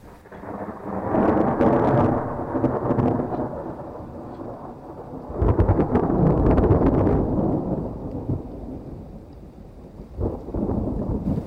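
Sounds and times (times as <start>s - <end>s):
distant thunder cracks: 0.0s - 11.4s
rain: 0.0s - 11.4s.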